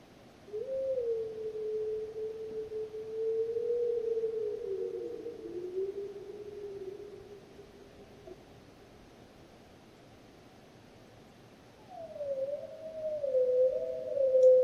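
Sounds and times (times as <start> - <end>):
lone wolf howling: 0.6 - 8.4, 11.9 - 14.6.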